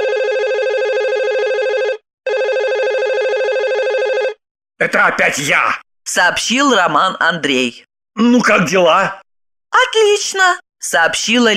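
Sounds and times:
telephone ringing: 0.0 - 4.4
speech: 4.8 - 11.5.

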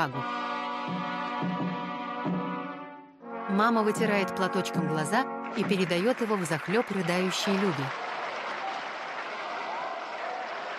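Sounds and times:
speech: 0.0 - 2.4, 3.5 - 8.1
theatre audience standing ovation at a Hamlet premiere: 5.6 - 10.7.

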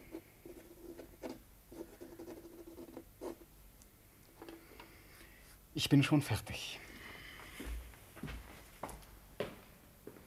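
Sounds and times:
pen scratching on paper writing a letter: 0.0 - 3.4
speech: 5.8 - 6.8.

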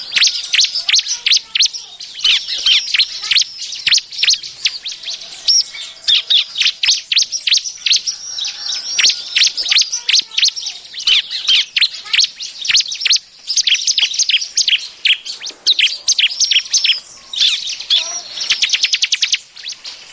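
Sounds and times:
Bar-winged prinia giving high sharp chirps and squeaky notes: 0.0 - 20.0.

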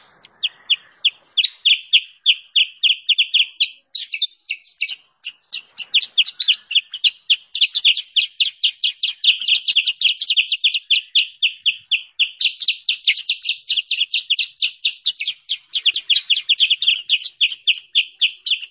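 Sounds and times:
bulbul continuous song: 0.0 - 18.6.

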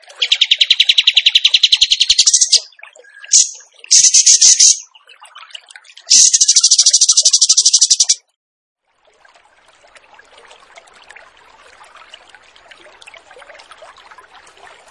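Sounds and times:
bird song of fast pulsed trills: 0.0 - 4.9, 6.0 - 8.2.

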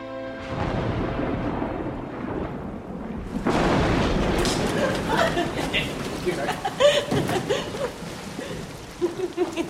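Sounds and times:
sudden heavy rain downpour: 0.4 - 9.6
light laughter of day-trippers: 4.6 - 9.6.

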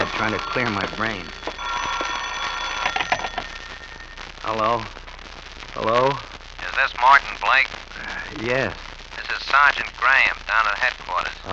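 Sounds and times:
telephone ringing: 0.0 - 4.4
speech: 0.2 - 1.5, 4.5 - 5.0, 5.8 - 11.5.

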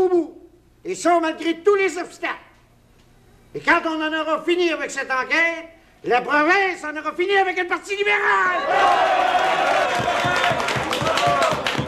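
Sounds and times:
speech: 0.8 - 2.4, 3.5 - 9.8
crowd shouting and jeering: 8.3 - 11.8
scattered claps: 9.4 - 11.8.

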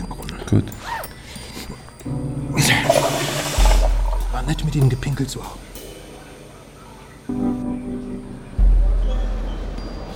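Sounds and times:
speech: 0.5 - 1.0, 4.5 - 5.7
low hum: 2.1 - 9.7
toilet flushing: 2.6 - 5.6.

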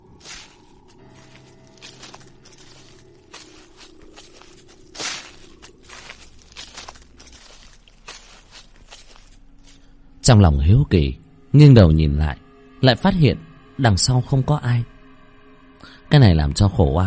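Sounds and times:
footsteps crunching on dry leaves: 0.0 - 10.0
speech: 10.3 - 15.0, 16.1 - 17.0.

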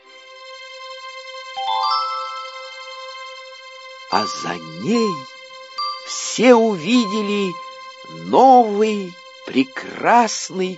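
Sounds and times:
gentle chime as little door opens: 1.6 - 3.4, 4.1 - 8.4
speech: 4.1 - 5.3, 6.1 - 10.7.

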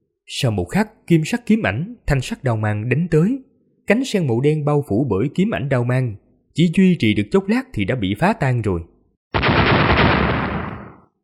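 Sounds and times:
speech: 0.3 - 9.4
explosive blasts merging into a rumbling roar: 9.4 - 11.1.

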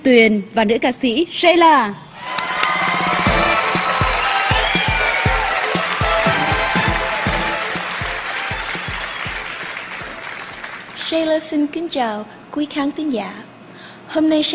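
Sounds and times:
speech: 0.0 - 2.1, 11.1 - 13.5, 14.1 - 14.5
cheers and whoops: 2.2 - 9.8
large audience clapping: 2.2 - 11.1
rhythmic low thumping beat: 3.0 - 10.2.

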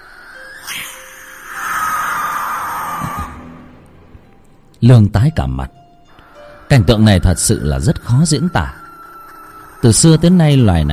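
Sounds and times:
barn owl screeching: 0.0 - 3.8, 6.1 - 10.9
speech: 4.8 - 5.8, 6.7 - 8.8, 9.8 - 10.9.

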